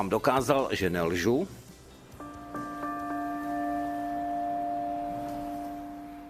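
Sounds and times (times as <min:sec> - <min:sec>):
speech: 0:00.0 - 0:01.6
large church bell ringing: 0:02.2 - 0:06.2.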